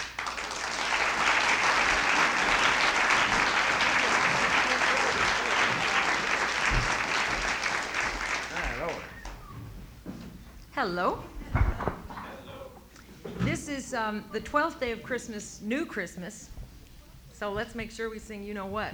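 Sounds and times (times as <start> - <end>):
audience applause welcoming performers at a Christmas concert: 0.0 - 10.0
laughter: 0.2 - 9.9, 11.0 - 15.1
speech: 10.8 - 11.3, 13.8 - 16.6, 17.4 - 18.9.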